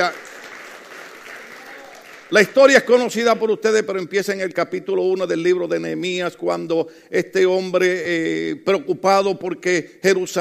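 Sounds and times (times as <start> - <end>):
speech: 0.0 - 0.2, 2.3 - 10.4
audience applause: 0.0 - 2.6.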